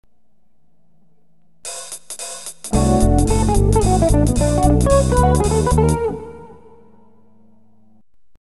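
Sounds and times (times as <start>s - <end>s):
jazz music: 1.7s - 7.1s.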